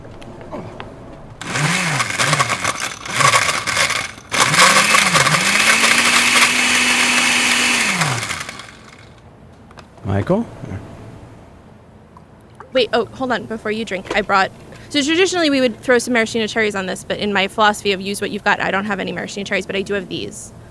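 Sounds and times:
electric blender blending a drink: 1.4s - 9.2s
speech: 10.2s - 10.9s, 12.7s - 20.6s.

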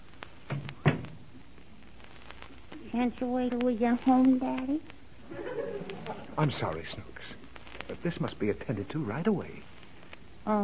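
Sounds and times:
door being closed: 0.5s - 1.2s
speech: 2.9s - 4.9s, 6.4s - 9.7s, 10.4s - 10.6s
laughter: 5.2s - 6.7s.

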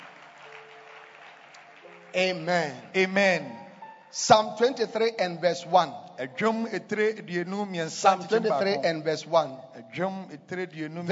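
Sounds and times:
audience clapping: 0.0s - 3.8s
speech: 2.1s - 11.1s.

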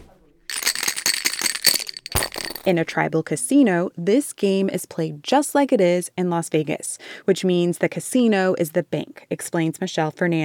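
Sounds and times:
dice being shaken: 0.5s - 2.8s
speech: 2.6s - 10.4s.

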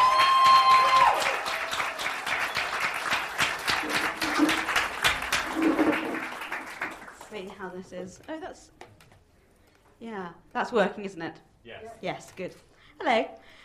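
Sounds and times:
audience applause welcoming an author to a book reading: 0.0s - 7.6s
speech: 7.7s - 8.8s, 10.0s - 13.6s.

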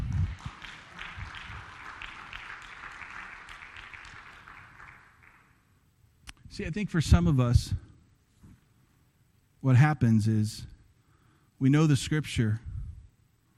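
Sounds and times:
audience applause: 0.0s - 5.6s
speech: 6.6s - 7.8s, 9.6s - 10.7s, 11.6s - 12.6s.

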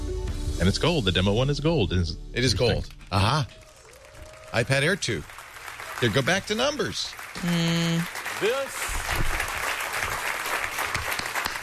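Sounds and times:
speech: 0.6s - 3.6s, 4.5s - 5.4s, 6.0s - 9.4s
audience applause: 3.2s - 11.6s.

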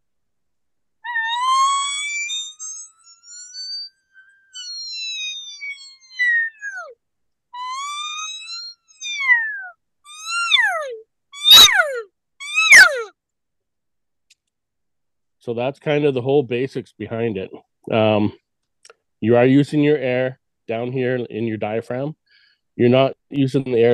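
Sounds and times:
elk call on a mouth reed squealing: 1.1s - 7.0s, 7.6s - 13.1s
speech: 15.4s - 18.4s, 19.2s - 22.2s, 22.8s - 23.9s.

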